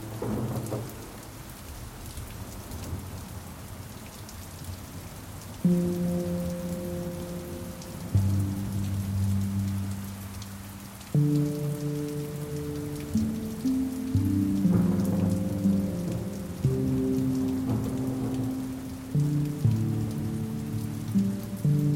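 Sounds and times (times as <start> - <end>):
rain: 0.0 - 21.9
handpan drum: 13.1 - 21.9.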